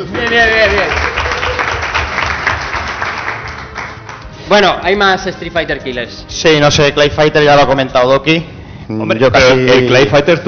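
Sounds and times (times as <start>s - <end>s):
audience applause: 0.0s - 4.3s
speech: 4.5s - 10.4s.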